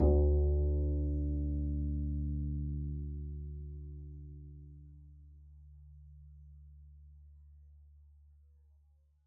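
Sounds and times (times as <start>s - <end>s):
double bass pizzicato on D2: 0.0s - 6.3s.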